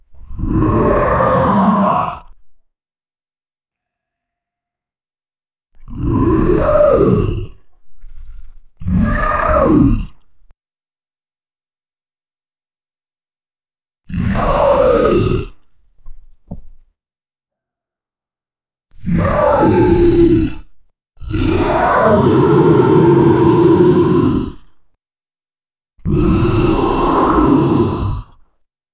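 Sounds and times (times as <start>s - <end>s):
kaiju dinosaur roar: 0.3s - 2.4s, 5.8s - 7.6s, 8.8s - 10.2s, 14.1s - 15.6s, 19.0s - 24.7s, 26.0s - 28.4s.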